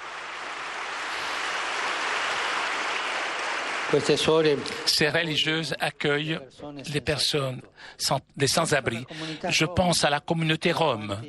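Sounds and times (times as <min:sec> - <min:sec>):
audience applause: 0:00.0 - 0:05.1
speech: 0:03.9 - 0:11.2.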